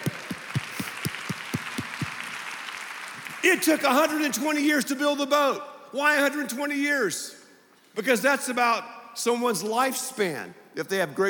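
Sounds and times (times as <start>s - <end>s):
people clapping: 0.0s - 4.4s
speech: 3.4s - 7.4s, 8.0s - 11.2s.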